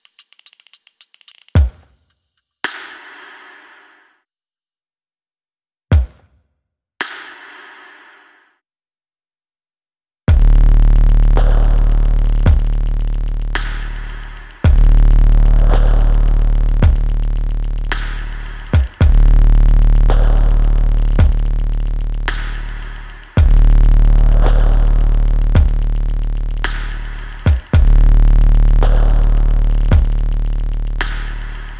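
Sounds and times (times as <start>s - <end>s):
percussion: 0.0s - 4.1s, 5.9s - 8.3s, 10.3s - 31.7s
bass: 10.3s - 31.7s.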